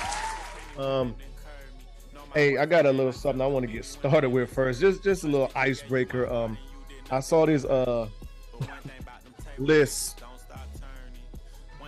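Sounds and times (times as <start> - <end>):
audience clapping: 0.0 - 0.8
speech: 0.8 - 1.4, 2.3 - 9.0, 9.6 - 10.2.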